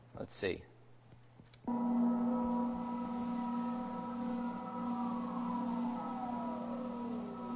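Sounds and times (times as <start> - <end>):
background noise: 0.0 - 7.5
oscillation tone: 1.7 - 7.5.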